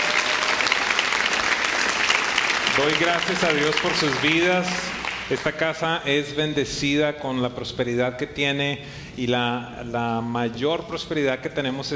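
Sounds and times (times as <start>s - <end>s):
audience applause: 0.0s - 5.5s
speech: 2.8s - 11.9s.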